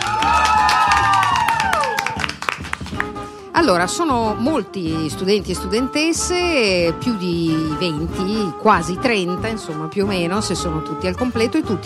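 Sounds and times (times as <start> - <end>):
audience applause: 0.0 - 3.2
people cheering and whooping: 0.0 - 3.2
speech: 3.6 - 11.8.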